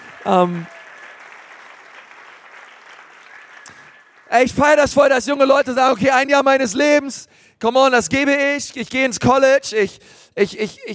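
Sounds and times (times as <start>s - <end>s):
audience applause: 0.0s - 4.6s
speech: 0.2s - 0.8s, 4.3s - 10.9s.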